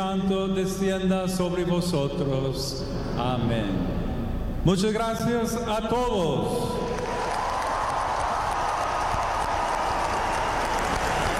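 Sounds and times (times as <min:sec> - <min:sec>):
speech: 0:00.0 - 0:04.0, 0:04.6 - 0:06.8
applause from a huge crowd of volunteers: 0:06.9 - 0:11.3.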